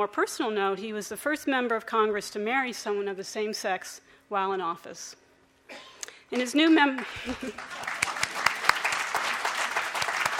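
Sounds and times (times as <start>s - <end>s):
speech: 0.0s - 7.9s
audience applause: 7.0s - 10.3s.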